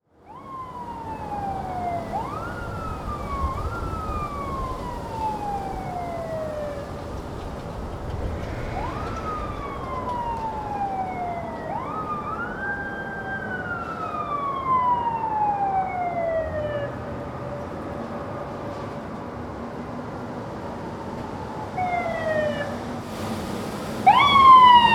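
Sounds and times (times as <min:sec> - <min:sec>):
emergency vehicle sirens in a city: 0:00.0 - 0:24.9.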